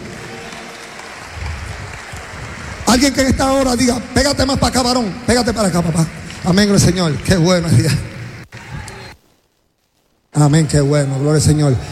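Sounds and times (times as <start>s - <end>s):
church congregation applauding: 0.0s - 9.1s
speech: 2.9s - 8.1s, 10.4s - 11.8s.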